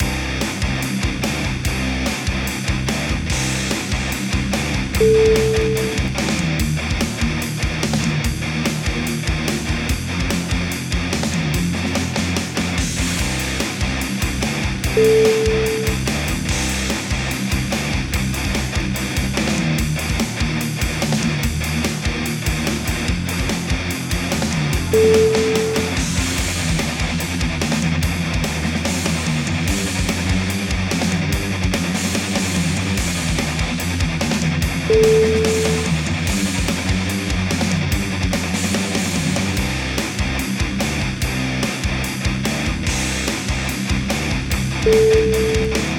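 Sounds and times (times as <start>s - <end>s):
heavy metal music: 0.0s - 45.9s.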